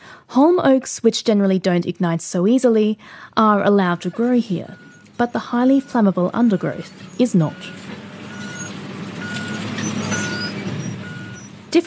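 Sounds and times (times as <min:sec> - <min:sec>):
speech: 0:00.4 - 0:07.8
large red tractor pulling a gigantic scarifier across the ground: 0:03.8 - 0:11.8.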